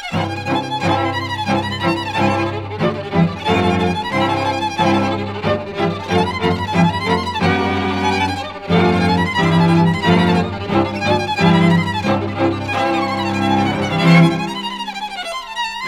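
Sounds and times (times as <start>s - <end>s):
symphony orchestra playing a symphony in F minor: 0.1s - 15.8s.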